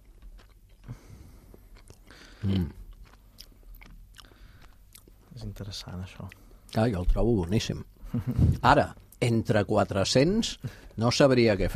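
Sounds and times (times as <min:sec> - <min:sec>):
crunching bite of cheese rind: 0:00.0 - 0:05.1
chewing a slice of cheese with part of its rind: 0:00.0 - 0:07.5
speech: 0:02.4 - 0:02.8, 0:05.6 - 0:11.7.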